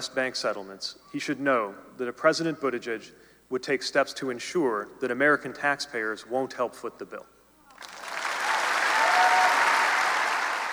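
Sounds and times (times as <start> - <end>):
speech: 0.0 - 7.9
audience applause at the IU Auditorium: 7.8 - 10.7.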